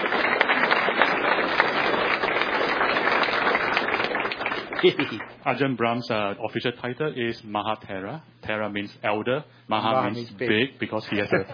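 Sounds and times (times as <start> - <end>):
audience round of applause: 0.0 - 5.4
speech: 4.8 - 11.5.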